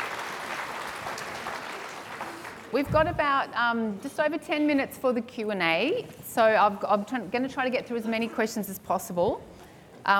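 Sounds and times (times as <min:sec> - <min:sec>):
audience applause: 0:00.0 - 0:02.8
speech: 0:02.7 - 0:10.1.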